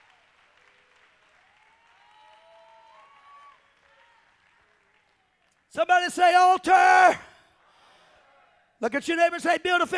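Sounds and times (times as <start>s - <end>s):
audience clapping hands: 0.0s - 6.0s
speech: 5.7s - 7.3s, 8.8s - 9.9s.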